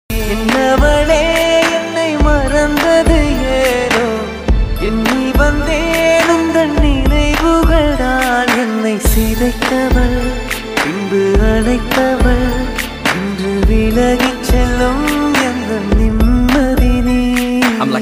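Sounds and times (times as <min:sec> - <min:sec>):
love failure song: 0:00.1 - 0:18.0.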